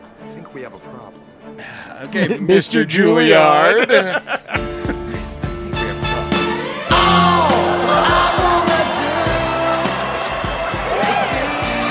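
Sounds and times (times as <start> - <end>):
music playing: 0.0 - 11.8
speech: 0.5 - 4.4
laughter: 2.0 - 11.8
crowd cheering, whooping and yelling: 6.2 - 11.8.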